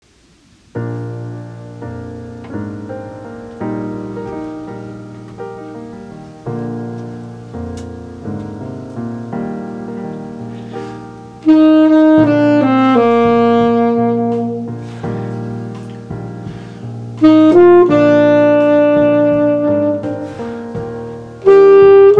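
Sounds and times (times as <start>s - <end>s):
saxophone: 10.3s - 22.1s.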